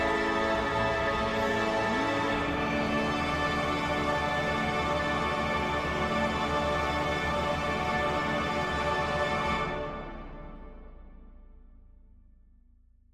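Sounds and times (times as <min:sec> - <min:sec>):
tenor singing: 0:00.0 - 0:09.7.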